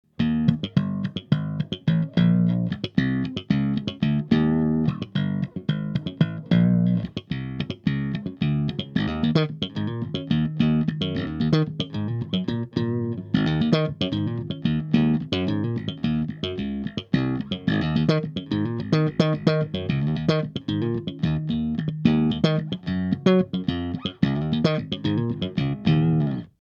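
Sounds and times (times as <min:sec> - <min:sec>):
EBS Mikro SKC funky music: 0:00.1 - 0:26.6.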